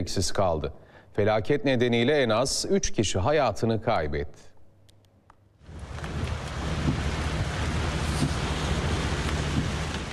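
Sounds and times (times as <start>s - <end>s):
speech: 0.0s - 4.5s
strong wind from a violent storm in Chile: 5.6s - 10.1s
crashing surf of huge storm waves in Chile: 5.7s - 10.1s.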